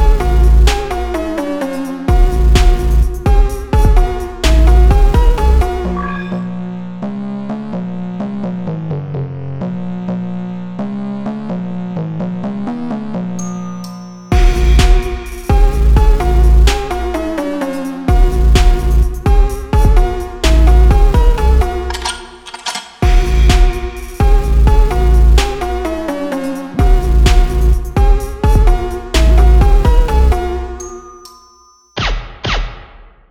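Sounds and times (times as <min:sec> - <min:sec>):
slowed drift phonk remix: 0:00.0 - 0:06.0, 0:14.2 - 0:21.9, 0:23.0 - 0:32.1.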